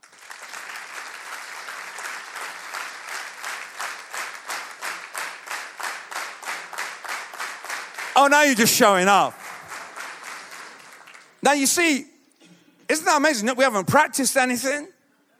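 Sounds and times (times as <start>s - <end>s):
crowd clapping in synchronized rhythm: 0.0s - 11.9s
speech: 8.2s - 9.4s, 11.4s - 12.1s, 12.9s - 15.0s.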